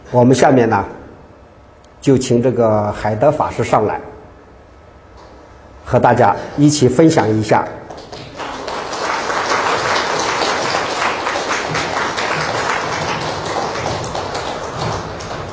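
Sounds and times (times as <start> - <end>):
speech: 0.1 - 1.0, 2.0 - 4.1, 5.9 - 8.1
crowd applause: 7.9 - 15.5.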